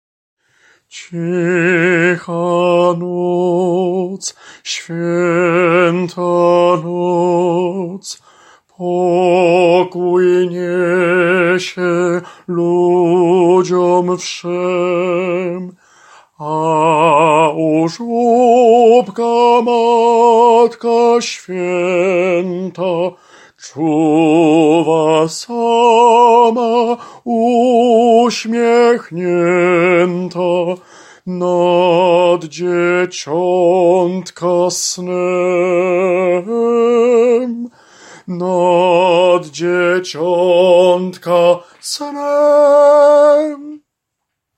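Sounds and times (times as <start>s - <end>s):
tenor singing: 0.9s - 43.8s.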